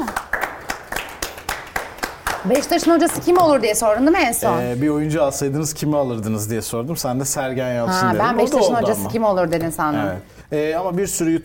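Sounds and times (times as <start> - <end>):
clapping applause: 0.0 - 3.5
speech: 2.4 - 11.4.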